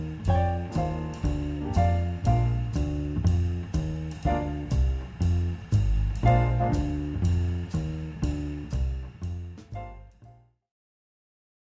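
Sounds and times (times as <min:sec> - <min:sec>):
comping walking bass line: 0:00.0 - 0:10.5.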